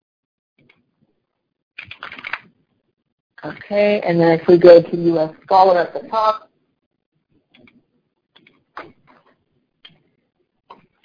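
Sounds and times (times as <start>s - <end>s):
typing on a computer keyboard: 1.8s - 2.6s, 7.5s - 9.0s
speech: 3.4s - 6.5s.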